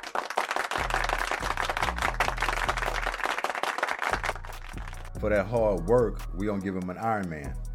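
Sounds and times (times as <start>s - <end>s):
applause: 0.0s - 5.1s
speech: 5.2s - 7.6s.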